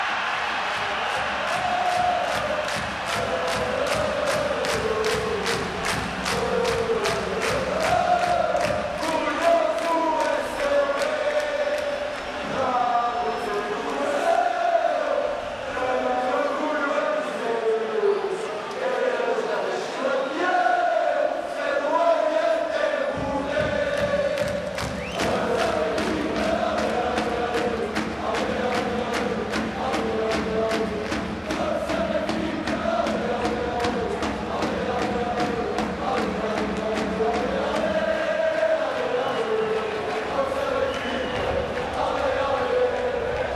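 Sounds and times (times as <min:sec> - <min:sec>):
chanting: 0:00.0 - 0:43.5.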